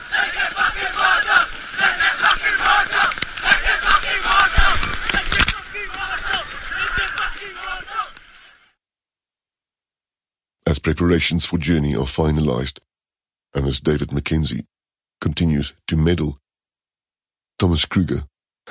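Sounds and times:
schoolchildren chanting: 0:00.0 - 0:08.6
speech: 0:10.8 - 0:12.9, 0:13.5 - 0:16.4, 0:17.6 - 0:18.6.

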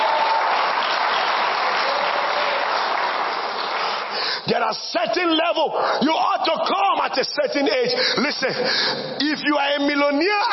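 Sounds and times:
crowd applauding: 0:00.0 - 0:04.6
speech: 0:04.6 - 0:10.5.

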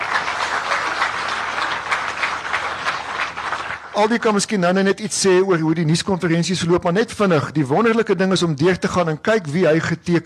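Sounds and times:
crowd applause: 0:00.0 - 0:04.5
speech: 0:04.0 - 0:10.2.

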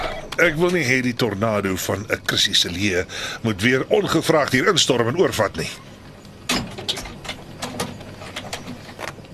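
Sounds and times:
speech: 0:00.4 - 0:05.9
door being shut and locked: 0:06.5 - 0:09.2.

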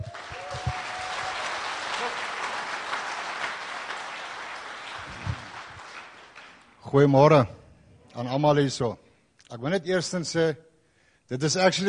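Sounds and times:
audience applause: 0:00.0 - 0:06.8
speech: 0:06.9 - 0:07.6, 0:08.2 - 0:10.7, 0:11.3 - 0:11.8.

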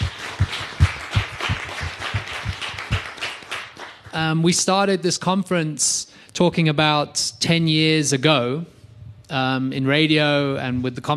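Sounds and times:
crowd applauding: 0:00.0 - 0:04.4
speech: 0:04.2 - 0:11.1.

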